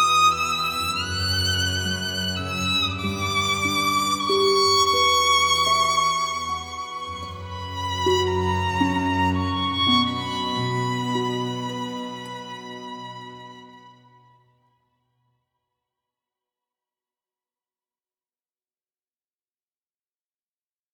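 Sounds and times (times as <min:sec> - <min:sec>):
violin: 0:00.0 - 0:14.6.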